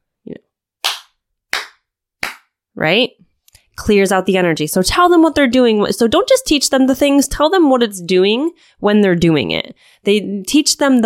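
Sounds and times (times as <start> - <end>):
loud hand claps: 0.8 - 2.5
speech: 2.8 - 11.0.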